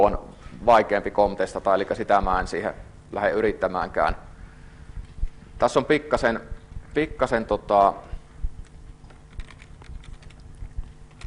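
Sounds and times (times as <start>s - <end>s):
speech: 0.0s - 4.3s, 5.6s - 8.2s
typing code on a computer keyboard: 8.6s - 10.5s.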